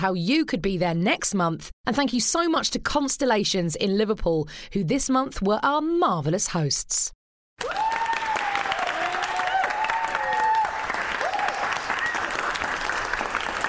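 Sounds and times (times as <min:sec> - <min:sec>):
speech: 0:00.0 - 0:08.0
audience clapping: 0:07.6 - 0:13.6.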